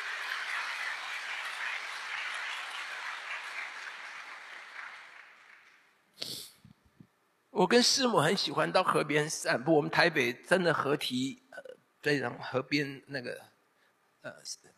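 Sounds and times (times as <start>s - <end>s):
audience applause: 0.0s - 6.0s
speech: 7.6s - 11.4s, 12.0s - 13.5s, 14.2s - 14.7s.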